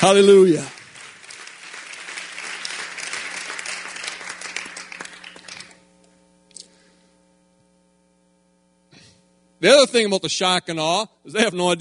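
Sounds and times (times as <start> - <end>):
speech: 0.0 - 0.8, 9.6 - 11.7
audience clapping: 0.0 - 5.9.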